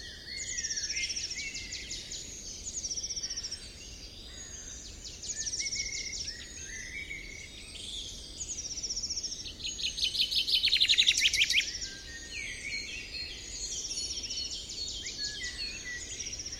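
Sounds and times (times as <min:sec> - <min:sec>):
bird chirps: 0:00.0 - 0:16.5.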